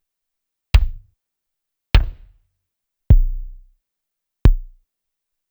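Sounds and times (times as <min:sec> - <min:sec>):
Clavia DDrum AT electronic drum pitched down: 0:00.8 - 0:01.1, 0:02.0 - 0:02.3, 0:03.1 - 0:03.7, 0:04.5 - 0:04.8.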